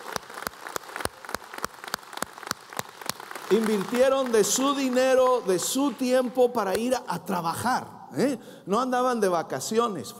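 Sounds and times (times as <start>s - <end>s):
crowd clapping: 0.0s - 6.9s
speech: 3.5s - 10.1s.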